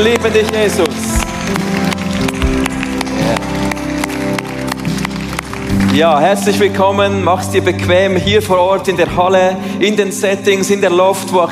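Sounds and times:
speech: 0.0s - 1.9s, 5.9s - 11.5s
crowd applauding: 0.0s - 7.0s.

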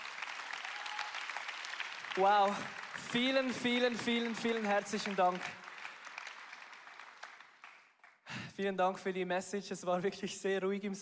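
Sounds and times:
audience applause: 0.0s - 8.2s
speech: 2.2s - 5.6s, 8.6s - 11.0s.

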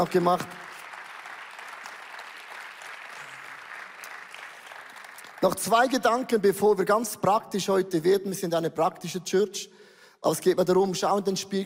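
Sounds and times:
speech: 0.0s - 0.6s, 5.4s - 11.6s
audience applause: 0.0s - 6.0s.

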